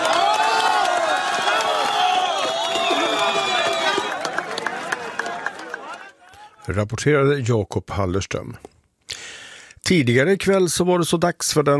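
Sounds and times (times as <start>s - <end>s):
crowd applause and cheering at rescue in Pereira: 0.0s - 6.7s
speech: 6.7s - 8.7s, 9.9s - 11.7s.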